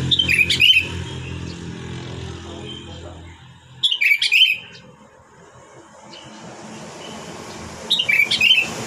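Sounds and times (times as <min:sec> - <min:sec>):
sooty-headed bulbul whistled song: 0:00.2 - 0:01.0, 0:03.8 - 0:04.8, 0:07.9 - 0:08.7.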